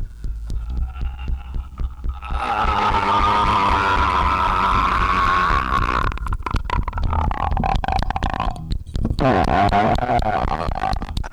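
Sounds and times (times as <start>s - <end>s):
guttural scream: 0.2s - 11.2s.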